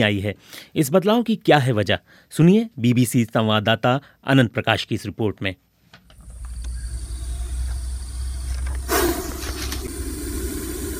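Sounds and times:
speech: 0.0 - 5.7
king cobra hissing: 6.2 - 10.9
low rumble: 6.2 - 10.9.

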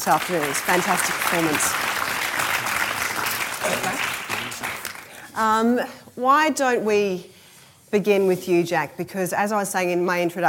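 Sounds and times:
speech: 0.0 - 2.0, 3.6 - 4.2, 5.4 - 7.3, 7.9 - 10.4
audience applause: 0.0 - 5.3.

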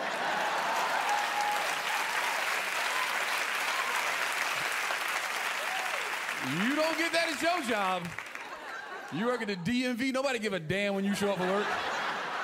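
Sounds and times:
laughter: 0.0 - 1.2, 6.4 - 10.0, 10.9 - 12.4
audience applause: 0.0 - 9.2
speech: 6.5 - 8.2, 9.1 - 11.9.

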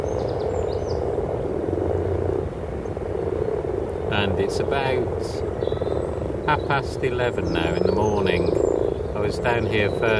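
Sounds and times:
frogs croaking: 0.0 - 10.1
speech: 4.1 - 5.8, 6.5 - 10.1.

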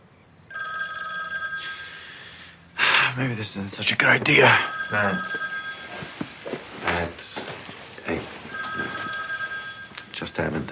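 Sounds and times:
telephone ringing with a bright electronic warble: 0.5 - 2.4, 4.3 - 6.4, 8.5 - 10.2
speech: 3.2 - 5.5, 10.4 - 10.6.

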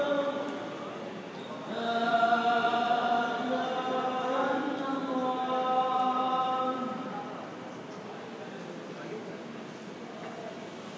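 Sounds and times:
call to prayer in Dubai airport: 0.0 - 7.4.

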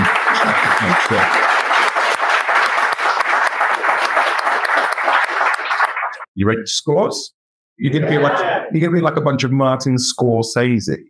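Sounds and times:
audience applause: 0.0 - 6.3
speech: 0.9 - 1.4, 6.4 - 11.0
laughter: 7.8 - 9.0.

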